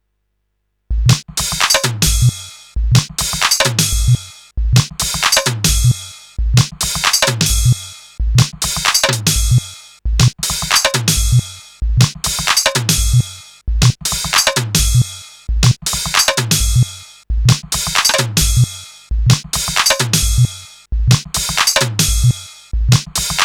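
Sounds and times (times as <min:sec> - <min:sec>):
stereo beat loop: 0:00.9 - 0:23.4.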